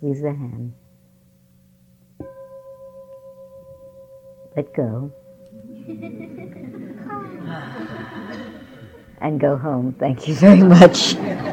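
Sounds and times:
speech: 0.0s - 0.8s, 4.6s - 11.5s
meditation bell ringing: 2.2s - 9.2s
laughter: 5.6s - 9.2s, 10.5s - 11.5s.

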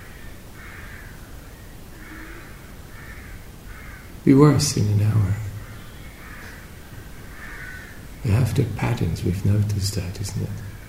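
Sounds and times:
rooks calling from a tree in the early morning: 0.0s - 4.3s, 5.3s - 8.3s
steady hiss: 0.0s - 10.8s
speech: 4.2s - 5.5s, 8.2s - 10.7s.

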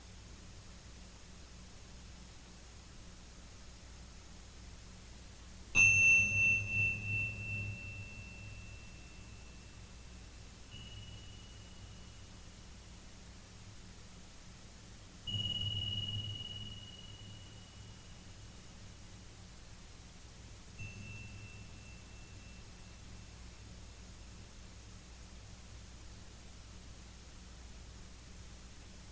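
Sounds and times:
low hiss: 0.0s - 29.1s
Tibetan bells and other bell tones struck: 5.8s - 12.3s, 15.3s - 18.6s, 20.8s - 23.3s.

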